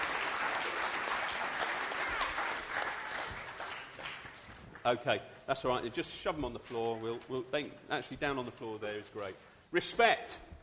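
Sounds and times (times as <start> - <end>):
audience applause: 0.0 - 4.8
speech: 4.8 - 10.5.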